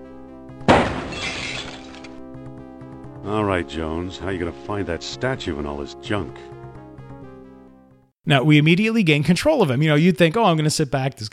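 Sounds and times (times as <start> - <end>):
orchestral music: 0.0 - 8.7
window glass shattering: 0.7 - 2.2
speech: 3.3 - 6.6, 8.2 - 11.3.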